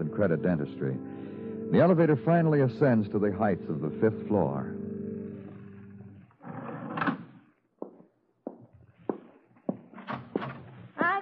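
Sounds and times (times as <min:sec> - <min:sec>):
speech: 0:00.2 - 0:04.8
footsteps in a hallway: 0:07.5 - 0:11.2.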